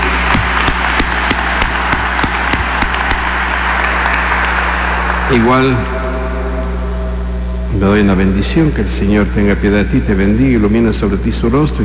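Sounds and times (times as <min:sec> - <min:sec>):
audience applause: 0:00.0 - 0:06.7
speech: 0:05.3 - 0:06.0, 0:07.8 - 0:11.8.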